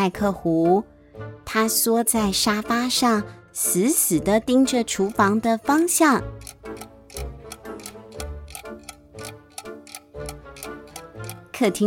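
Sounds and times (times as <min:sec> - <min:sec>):
speech: 0:00.0 - 0:00.9, 0:01.5 - 0:06.9, 0:11.6 - 0:11.8
sustained tonal musical backdrop with deep low notes: 0:00.5 - 0:11.8
clock second hand ticking: 0:04.2 - 0:11.8.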